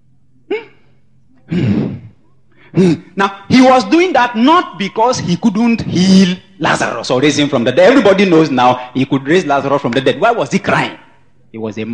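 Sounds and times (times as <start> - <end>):
man's voice imitating groaning: 2.8 - 3.1
speech: 2.8 - 11.9.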